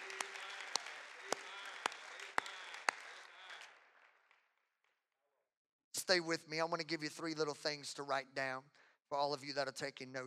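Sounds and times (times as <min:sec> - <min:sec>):
audience clapping hands: 0:00.0 - 0:04.1
sharp loud claps: 0:00.0 - 0:04.5
speech: 0:06.1 - 0:10.2.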